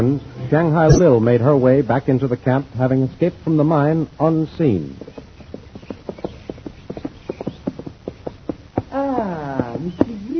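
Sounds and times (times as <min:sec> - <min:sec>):
speech: 0:00.0 - 0:05.1
horse hooves clip-clopping as a rider arrives: 0:02.2 - 0:10.3.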